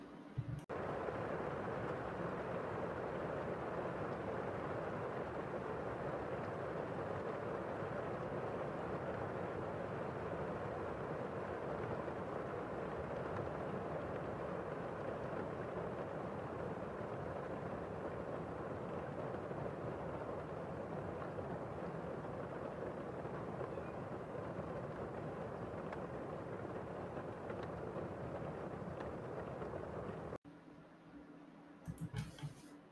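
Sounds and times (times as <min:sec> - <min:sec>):
rain: 0:00.4 - 0:30.4.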